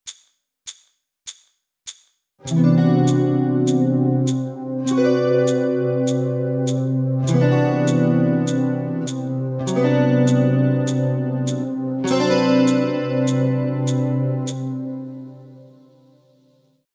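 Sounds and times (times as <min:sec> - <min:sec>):
guitar playing: 0:02.4 - 0:15.9.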